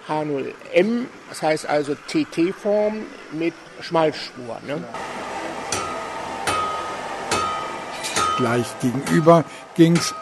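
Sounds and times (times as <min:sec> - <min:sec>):
speech: 0:00.1 - 0:05.2, 0:08.4 - 0:10.2
blacksmith hammer blows on metal in a museum smithy: 0:05.7 - 0:10.2.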